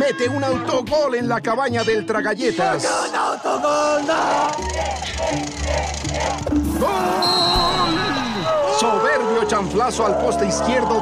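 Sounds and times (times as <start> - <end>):
speech: 0.1 - 8.2, 8.8 - 11.0
stadium crowd erupting in cheers: 4.1 - 11.0.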